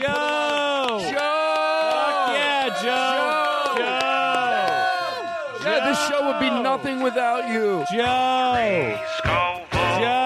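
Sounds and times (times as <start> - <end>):
faint clapping: 0.0 - 2.4, 3.2 - 5.0
several voices cheering and whooping: 0.0 - 10.2
speech: 6.0 - 10.2.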